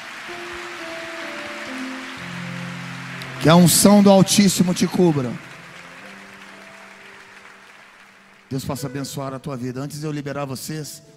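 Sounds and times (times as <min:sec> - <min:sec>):
audience applause: 0:00.0 - 0:08.8
speech: 0:00.3 - 0:00.6, 0:03.4 - 0:05.5, 0:08.5 - 0:11.1.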